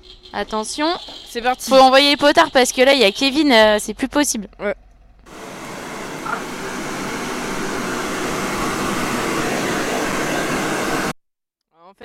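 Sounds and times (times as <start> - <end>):
speech: 0.3 - 4.8
hair dryer at a dog grooming salon: 5.3 - 11.2.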